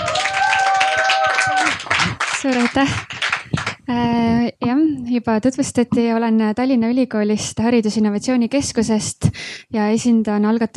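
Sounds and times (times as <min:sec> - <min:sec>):
audience applause: 0:00.0 - 0:03.8
speech: 0:02.4 - 0:03.2, 0:05.0 - 0:10.7.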